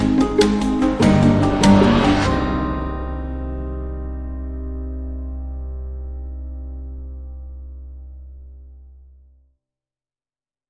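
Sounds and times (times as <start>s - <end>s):
long musical sting: 0.2s - 6.2s.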